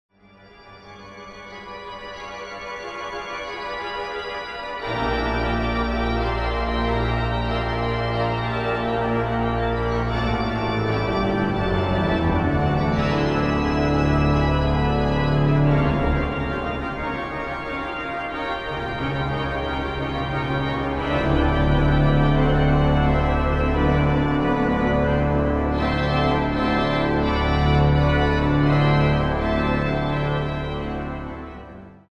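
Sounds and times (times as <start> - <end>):
organ: 0.2 - 32.1.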